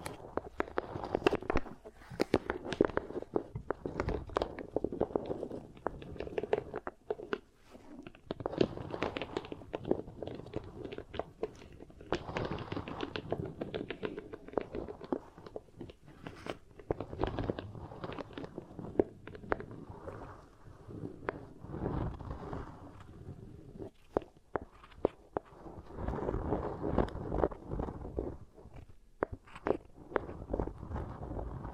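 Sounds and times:
beeswax crackling and squishing: 0.0 - 31.7.

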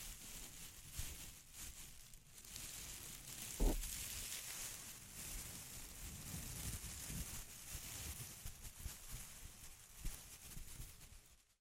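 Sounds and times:
dense continuous crinkling: 0.0 - 11.5
sharp thump: 3.6 - 3.8.

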